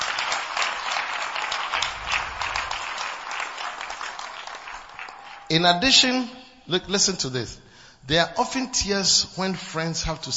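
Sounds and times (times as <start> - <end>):
audience clapping: 0.0 - 6.0
speech: 5.5 - 10.3.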